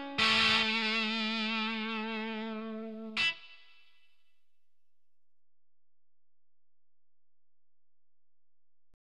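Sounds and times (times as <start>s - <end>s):
blues music: 0.0s - 4.2s.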